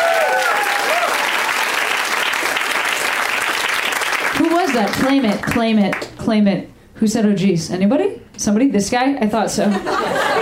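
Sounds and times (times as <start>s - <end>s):
faint whistles and cheers: 0.0s - 1.8s
crowd applause: 0.0s - 5.5s
speech: 4.8s - 10.4s
laughter: 9.7s - 10.4s.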